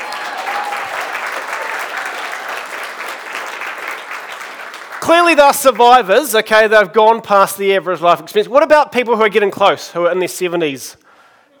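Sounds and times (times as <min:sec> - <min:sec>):
audience applause: 0:00.0 - 0:06.2
speech: 0:05.1 - 0:11.0.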